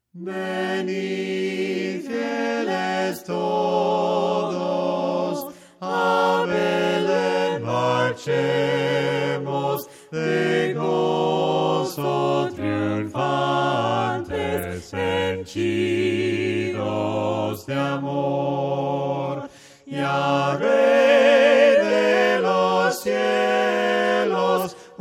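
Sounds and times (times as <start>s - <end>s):
voices singing hymns a cappella: 0.1s - 25.0s.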